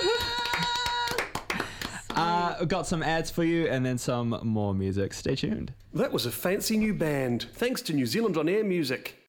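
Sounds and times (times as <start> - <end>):
few people clapping for a band: 0.0 - 2.5
speech: 2.5 - 9.2.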